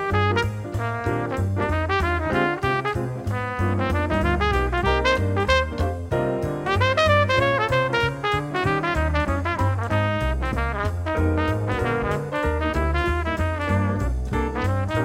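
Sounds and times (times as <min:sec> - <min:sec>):
trumpet playing fast swing jazz: 0:00.0 - 0:15.0.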